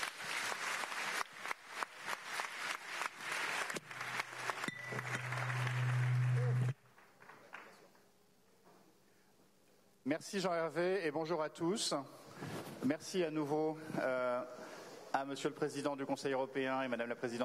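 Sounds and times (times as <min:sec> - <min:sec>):
crowd applauding: 0:00.0 - 0:07.9
low hum: 0:03.8 - 0:06.8
speech: 0:10.1 - 0:17.4.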